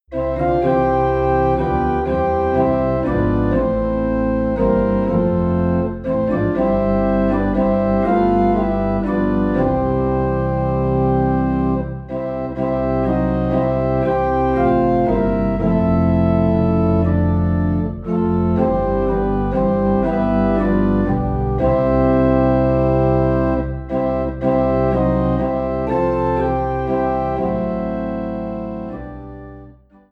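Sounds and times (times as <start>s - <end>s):
low organ note in C: 0.1s - 30.0s.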